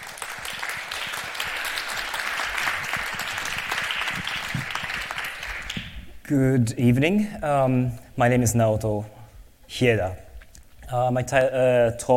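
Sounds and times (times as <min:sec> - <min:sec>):
audience applause: 0:00.0 - 0:06.1
speech: 0:06.3 - 0:10.2, 0:10.9 - 0:12.1.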